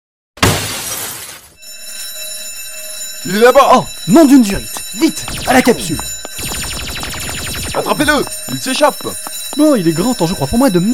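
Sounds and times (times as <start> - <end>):
glass display case being smashed: 0.4 - 1.6
bright sustained ringing: 1.6 - 10.9
speech: 3.2 - 6.5, 7.8 - 10.9.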